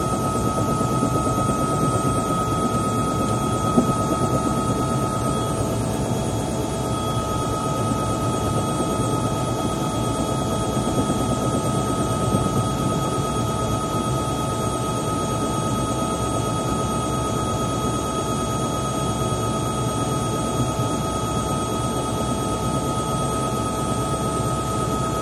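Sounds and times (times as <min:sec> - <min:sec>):
Bell Jetranger Executive helicopter engine switching off: 0:00.0 - 0:13.8
Bell Jetranger Executive helicopter descending and landing heard from interior: 0:00.0 - 0:25.2.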